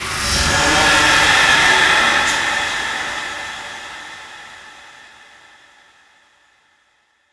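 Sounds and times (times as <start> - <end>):
sci-fi effect: 0.0 - 5.3.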